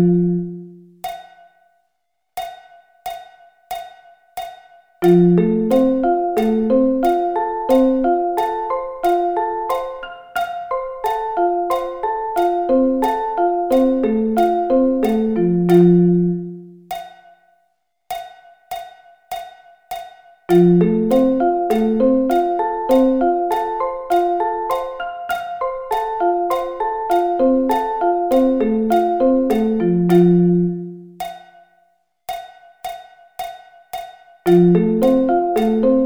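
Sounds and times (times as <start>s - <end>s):
F arpeggio inversions: 5.0s - 16.7s, 20.5s - 31.2s, 34.5s - 36.0s.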